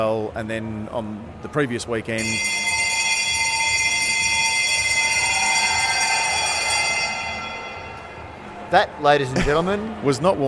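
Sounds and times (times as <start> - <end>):
speech: 0.0 - 2.8, 8.7 - 10.4
bell ringing: 2.2 - 8.7.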